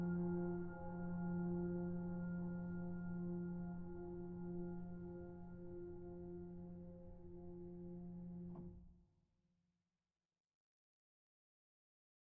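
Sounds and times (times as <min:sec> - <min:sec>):
calm nature song: 0:00.0 - 0:08.7.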